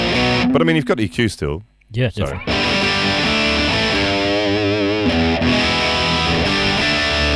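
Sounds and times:
distorted electric guitar played through an amp's vintage channel: 0:00.0 - 0:01.2, 0:02.3 - 0:07.3
speech: 0:00.5 - 0:02.7.

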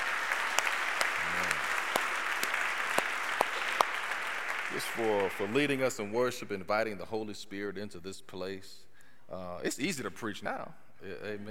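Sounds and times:
church congregation applauding the worship band: 0:00.0 - 0:06.1
speech: 0:04.7 - 0:11.4.

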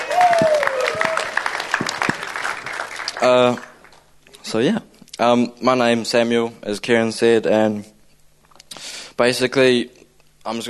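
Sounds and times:
round of applause: 0:00.0 - 0:04.0
speech: 0:03.2 - 0:03.7, 0:04.5 - 0:07.9, 0:09.2 - 0:10.6.

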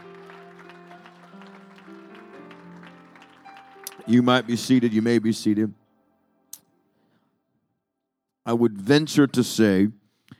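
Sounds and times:
audience clapping hands: 0:00.0 - 0:05.3
speech: 0:04.0 - 0:05.8, 0:08.5 - 0:10.0.

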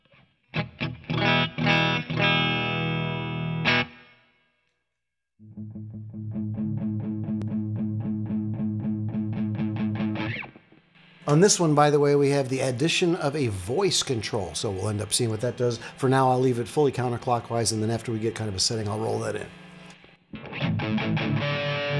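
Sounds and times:
bass guitar played through overdrive pedal: 0:00.6 - 0:04.1, 0:05.4 - 0:11.4, 0:20.3 - 0:21.9
speech: 0:11.3 - 0:19.6.

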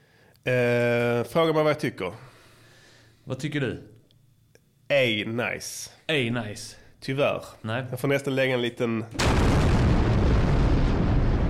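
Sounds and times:
speech: 0:00.4 - 0:02.3, 0:03.3 - 0:03.9, 0:04.9 - 0:09.5
bomb explosion sound effect: 0:09.2 - 0:11.4.

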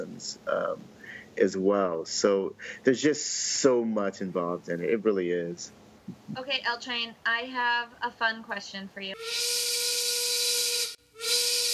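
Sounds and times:
speech: 0:00.0 - 0:09.8
train whistle sound effect: 0:09.2 - 0:11.7.

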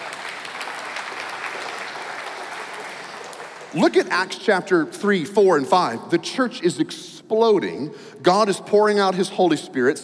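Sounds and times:
audience applause: 0:00.0 - 0:03.8
speech: 0:03.7 - 0:10.0.

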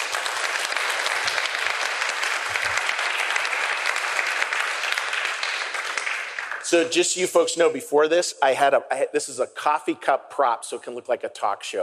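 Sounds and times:
audience applause: 0:00.0 - 0:07.1
speech: 0:06.7 - 0:11.8.

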